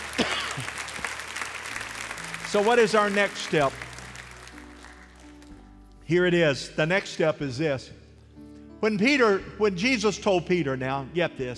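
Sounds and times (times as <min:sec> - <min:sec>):
audience clapping: 0:00.0 - 0:05.7
speech: 0:02.5 - 0:03.8, 0:06.1 - 0:08.0, 0:08.8 - 0:11.5.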